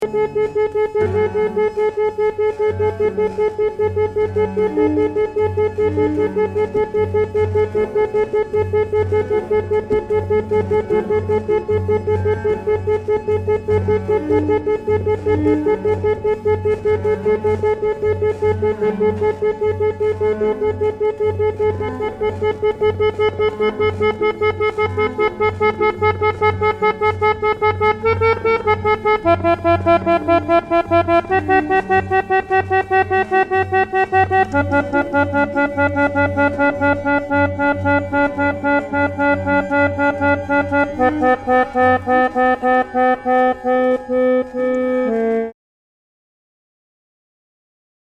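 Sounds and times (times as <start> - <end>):
keyboard playing: 0.0 - 45.6.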